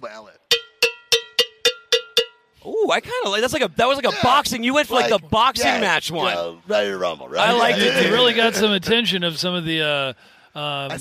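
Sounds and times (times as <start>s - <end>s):
cowbell being hit: 0.5s - 2.6s
speech: 2.9s - 10.9s.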